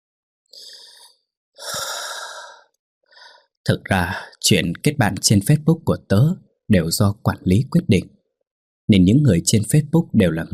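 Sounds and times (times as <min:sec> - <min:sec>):
deep breath taken to calm down: 0:00.5 - 0:03.6
speech: 0:03.7 - 0:08.2, 0:08.9 - 0:10.5.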